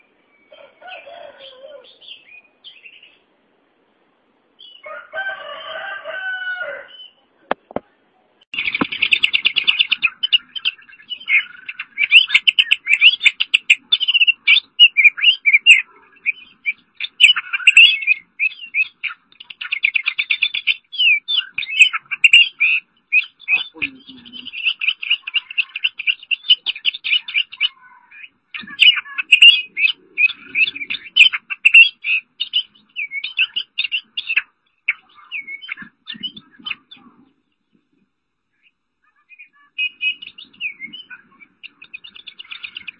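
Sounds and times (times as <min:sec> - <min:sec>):
Oriental magpie-robin singing: 0:00.0 - 0:03.3, 0:04.6 - 0:07.3, 0:08.5 - 0:42.9.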